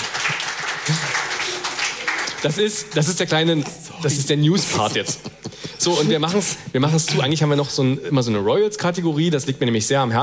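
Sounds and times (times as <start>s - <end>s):
clapping: 0.0s - 3.2s
speech: 2.4s - 10.2s.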